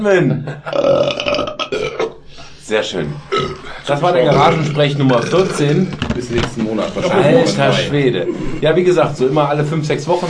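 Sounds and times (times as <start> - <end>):
speech: 0.0 - 1.3, 2.7 - 10.2
long loud burp: 0.7 - 2.2, 3.2 - 6.0.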